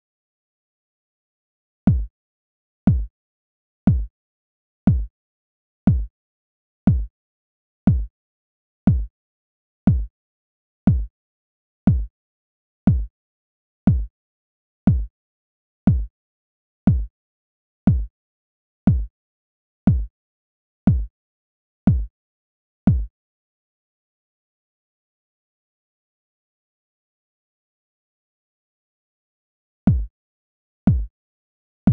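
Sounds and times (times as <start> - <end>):
kick drum: 1.9 - 2.1, 2.9 - 3.1, 3.9 - 4.1, 4.9 - 5.1, 5.9 - 6.1, 6.9 - 7.1, 7.9 - 8.1, 8.9 - 9.1, 9.9 - 10.1, 10.9 - 11.1, 11.9 - 12.1, 12.9 - 13.1, 13.9 - 14.1, 14.9 - 15.1, 15.9 - 16.1, 16.9 - 17.1, 17.9 - 18.1, 18.9 - 19.1, 19.9 - 20.1, 20.9 - 21.1, 21.9 - 22.1, 22.9 - 23.1, 29.9 - 30.1, 30.9 - 31.1.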